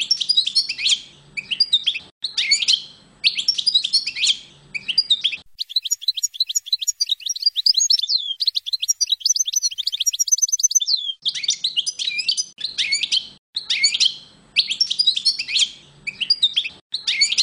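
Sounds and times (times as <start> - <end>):
European goldfinch singing: 0.0 - 17.4.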